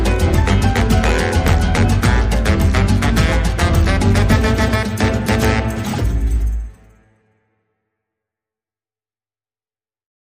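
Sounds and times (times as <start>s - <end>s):
salsa music without trumpet: 0.0s - 7.0s.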